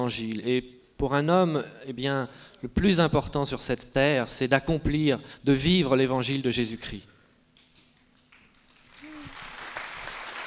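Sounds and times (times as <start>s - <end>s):
speech: 0.0s - 7.1s
audience applause: 8.7s - 10.4s.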